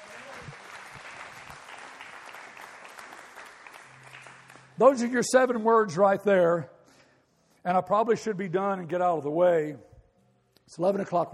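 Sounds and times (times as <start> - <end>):
large group applause: 0.0 - 5.1
speech: 4.8 - 6.7, 7.6 - 9.9, 10.7 - 11.3.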